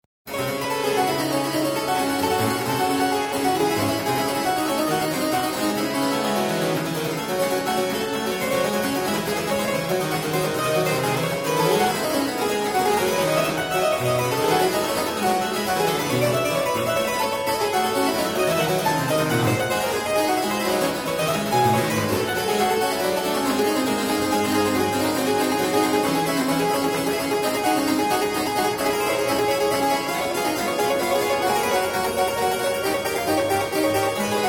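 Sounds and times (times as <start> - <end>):
prelude in D minor: 0.3 - 34.4.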